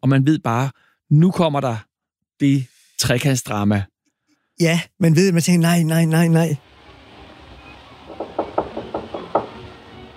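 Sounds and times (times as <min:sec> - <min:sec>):
speech: 0:00.0 - 0:03.9, 0:04.6 - 0:06.7
knocking on a door: 0:08.1 - 0:09.8.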